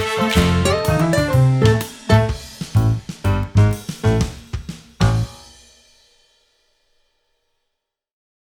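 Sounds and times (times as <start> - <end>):
swing music: 0.0 - 5.8.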